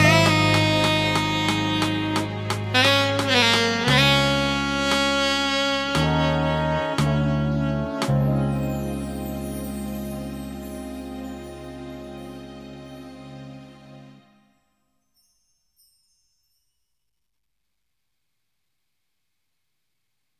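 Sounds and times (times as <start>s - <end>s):
concert backing track: 0.0s - 14.3s.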